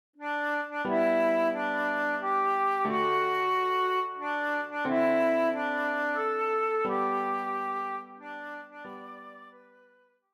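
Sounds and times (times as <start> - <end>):
transverse flute: 0.2 - 10.0.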